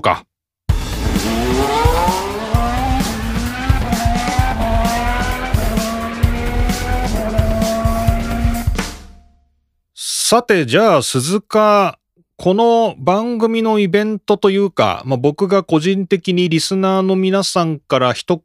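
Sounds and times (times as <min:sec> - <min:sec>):
speech: 0:00.0 - 0:00.3, 0:10.3 - 0:18.4
motor racing engines whining in a break jingle: 0:00.8 - 0:08.6
tires squealing and skidding: 0:00.9 - 0:08.6.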